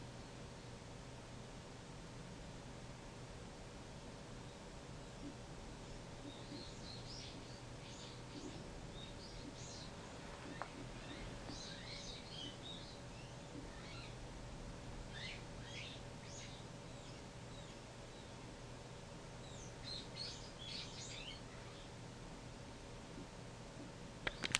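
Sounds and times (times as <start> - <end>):
steady low hum: 0.0 - 24.5
white-cheeked starling calls: 5.2 - 14.2, 15.1 - 18.4, 19.4 - 22.0.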